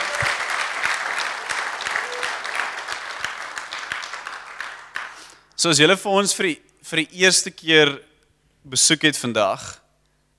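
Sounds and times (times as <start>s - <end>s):
audience clapping hands: 0.0s - 5.5s
speech: 5.6s - 9.8s.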